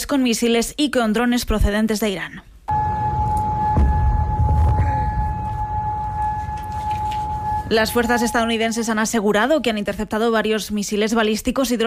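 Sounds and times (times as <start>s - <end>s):
speech: 0.1s - 2.5s, 7.7s - 11.8s
air raid sirens: 2.7s - 9.2s.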